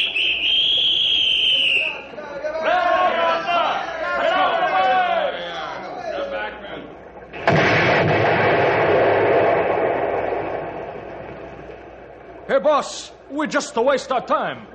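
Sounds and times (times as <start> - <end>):
warning whistle: 0.0 - 2.2
excited voices shouting: 2.6 - 5.4
falling debris: 7.3 - 11.4
explosion blowing up log pile: 7.3 - 12.4
speech: 12.6 - 14.7.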